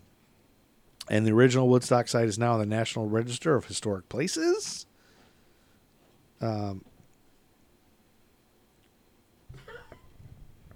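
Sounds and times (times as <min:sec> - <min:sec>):
speech: 0:01.1 - 0:04.9, 0:06.4 - 0:06.9
dog coughing: 0:09.5 - 0:10.1.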